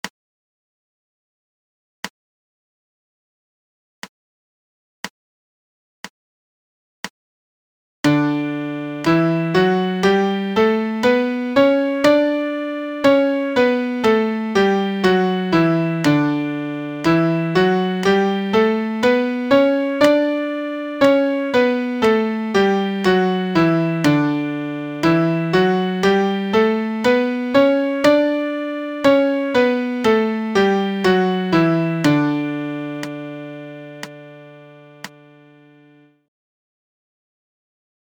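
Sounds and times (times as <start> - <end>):
MIDI D major scale: 8.1 - 36.1.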